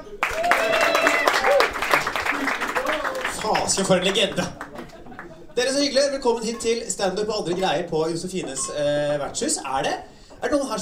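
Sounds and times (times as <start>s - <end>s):
audience applause: 0.0s - 5.5s
laughter: 2.2s - 6.8s
speech: 3.7s - 4.6s, 5.6s - 10.8s.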